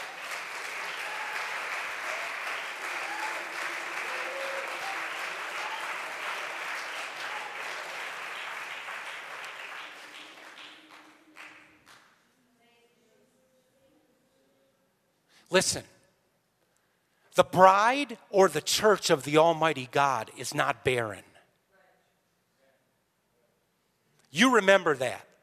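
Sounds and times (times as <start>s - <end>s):
audience clapping hands in praise: 0.0s - 12.2s
speech: 15.5s - 15.9s, 17.4s - 21.3s, 24.3s - 25.3s.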